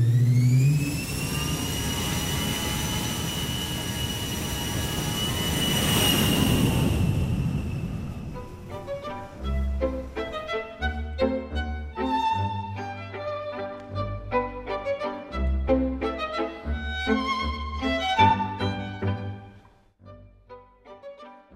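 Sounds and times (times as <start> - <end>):
jet airplane engine roaring with a high whine: 0.0 - 10.9
plucked melodic music: 8.4 - 21.5.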